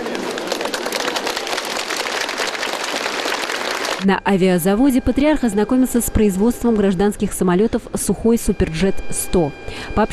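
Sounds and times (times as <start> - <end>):
applause: 0.0 - 4.1
speech: 4.0 - 10.1.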